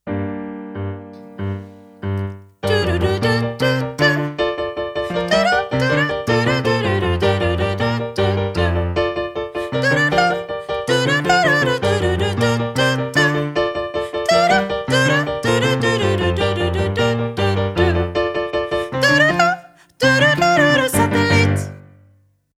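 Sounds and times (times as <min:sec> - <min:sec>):
soprano voice: 0:01.2 - 0:21.8.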